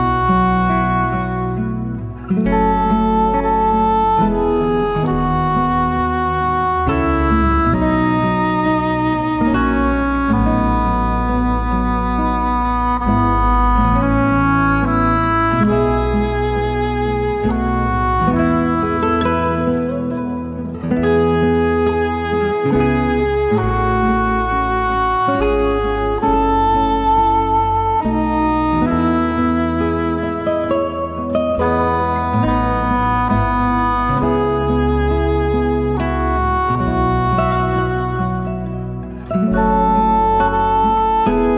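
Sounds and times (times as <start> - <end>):
clarinets playing: 0.0 - 41.5.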